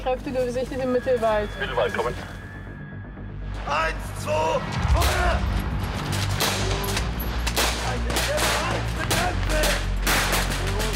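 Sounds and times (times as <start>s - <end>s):
speech: 0.1s - 2.4s, 3.7s - 5.6s
low rumble: 0.4s - 9.2s
blank cartridges firing during a military field exercise: 6.1s - 10.9s.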